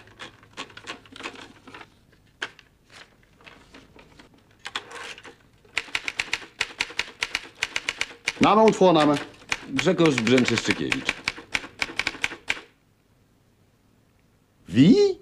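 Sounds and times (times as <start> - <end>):
typewriter keys clacking: 5.7 - 12.6
speech: 8.4 - 11.2, 14.8 - 15.1.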